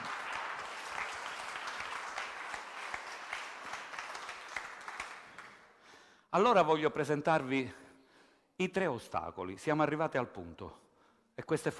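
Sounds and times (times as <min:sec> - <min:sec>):
audience applause: 0:00.0 - 0:05.6
speech: 0:06.3 - 0:07.8, 0:08.6 - 0:10.8, 0:11.4 - 0:11.7.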